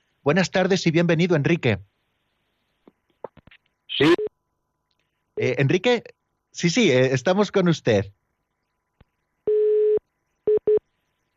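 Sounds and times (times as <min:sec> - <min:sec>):
speech: 0:00.2 - 0:01.9, 0:04.0 - 0:04.2, 0:05.4 - 0:08.2
telephone busy tone after a dropped radio call-in: 0:09.5 - 0:10.8.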